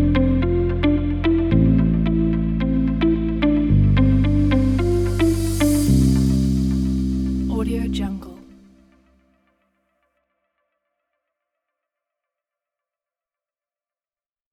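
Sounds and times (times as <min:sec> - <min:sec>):
upbeat corporate electronic music: 0:00.0 - 0:08.7.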